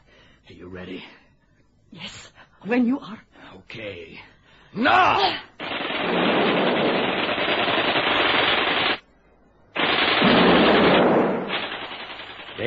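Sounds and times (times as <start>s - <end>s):
speech: 0.5s - 1.2s, 1.9s - 6.4s
grenade explosions: 5.6s - 9.0s, 9.8s - 12.6s
rapid gunfire: 5.6s - 9.0s, 9.8s - 12.6s.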